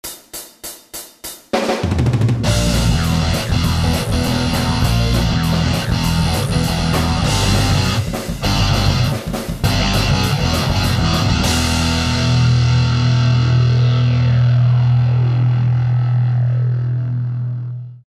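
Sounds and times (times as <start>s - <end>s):
creepy garage ambience: 2.4s - 18.0s.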